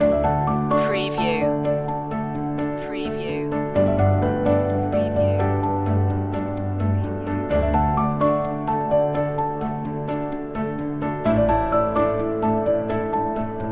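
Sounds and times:
music loop: 0.0 - 13.6.

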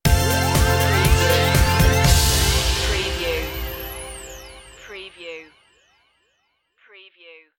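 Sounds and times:
welcome stinger: 0.0 - 5.7.

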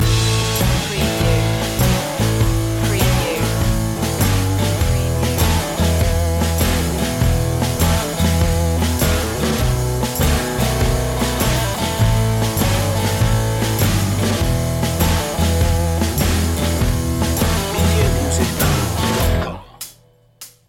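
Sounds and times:
delta sound loop: 0.0 - 20.0.

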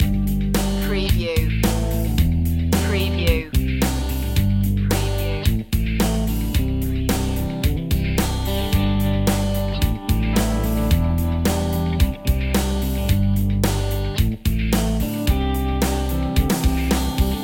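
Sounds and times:
pop rock loop: 0.0 - 17.4.

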